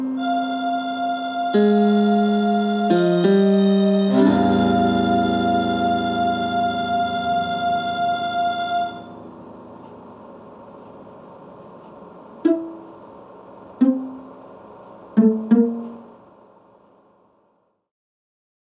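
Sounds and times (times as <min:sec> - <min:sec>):
viola: 0:00.2 - 0:10.0, 0:15.2 - 0:16.1.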